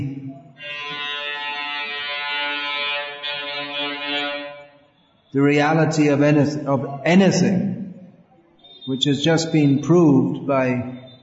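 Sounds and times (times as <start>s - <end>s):
loud horn: 0.6s - 5.4s
speech: 5.3s - 7.8s, 8.9s - 11.0s.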